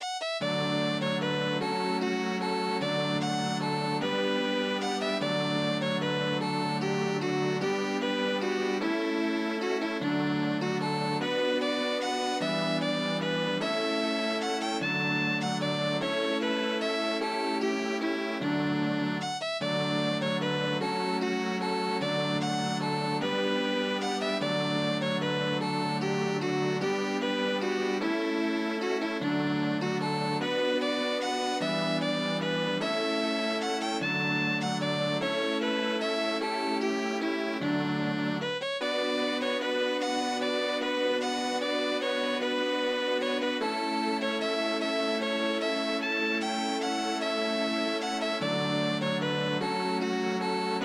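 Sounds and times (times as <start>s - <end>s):
waltz music: 0.0s - 50.8s.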